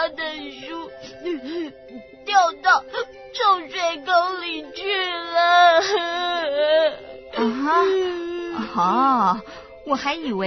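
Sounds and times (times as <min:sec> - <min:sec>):
child crying in wailing sobs: 0:00.0 - 0:09.2
speech: 0:08.8 - 0:10.4.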